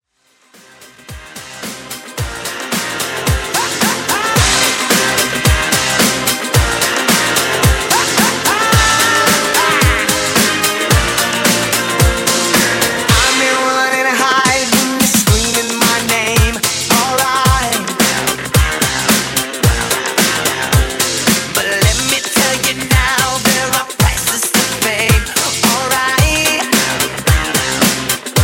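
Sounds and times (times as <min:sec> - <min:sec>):
110 BPM drum beat: 0:01.1 - 0:28.4.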